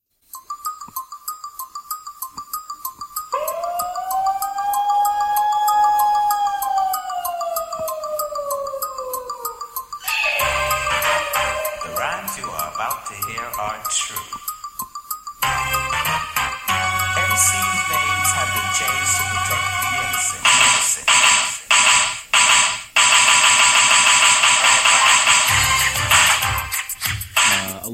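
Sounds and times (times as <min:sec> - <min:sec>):
high gliding whistled melody: 0:00.3 - 0:21.0
old-school rap instrumental beat with chromatic ticking percussion: 0:00.3 - 0:27.9.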